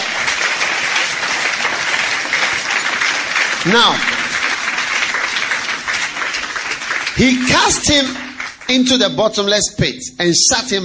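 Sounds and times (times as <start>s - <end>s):
audience clapping: 0.0s - 9.9s
speech: 3.6s - 4.2s, 7.2s - 10.8s.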